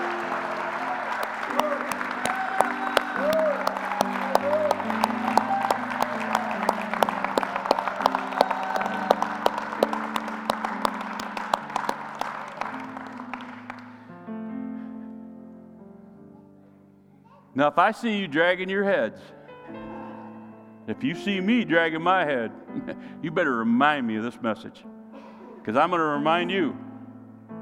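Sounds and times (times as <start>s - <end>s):
scattered cheers: 0.0s - 12.9s
audience applause: 0.0s - 13.9s
speech: 17.6s - 19.4s, 21.0s - 24.9s, 25.6s - 26.8s.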